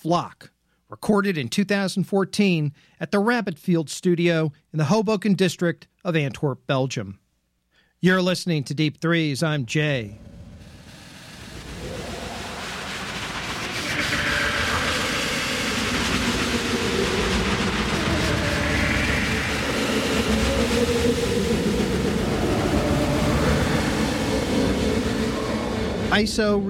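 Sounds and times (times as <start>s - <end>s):
speech: 0.0s - 7.2s, 8.0s - 10.3s, 26.2s - 26.6s
train departing on rails: 10.1s - 26.4s.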